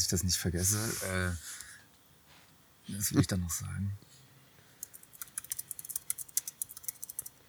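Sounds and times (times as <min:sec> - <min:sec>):
speech: 0:00.0 - 0:01.7, 0:02.9 - 0:04.1
keyboard typing as someone writes down a note: 0:04.8 - 0:07.4.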